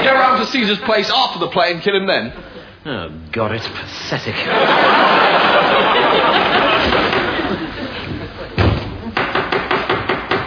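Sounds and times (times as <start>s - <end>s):
speech: 0.5s - 7.1s
laughter: 4.3s - 9.2s
heavy thud: 8.1s - 9.1s
sharp knocks on a door: 8.6s - 10.4s.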